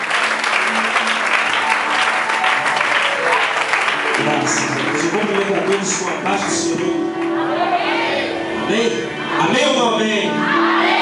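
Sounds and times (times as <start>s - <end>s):
audience applauding: 0.0s - 7.9s
speech: 4.5s - 8.0s, 8.7s - 10.8s.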